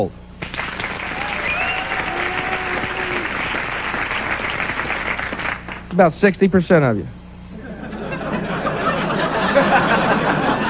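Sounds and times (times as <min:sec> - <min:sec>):
speech: 0:00.0 - 0:00.2, 0:05.9 - 0:07.2
crowd applauding: 0:00.4 - 0:05.9
faint voices and whistles: 0:01.2 - 0:02.0
laughter: 0:07.5 - 0:10.6.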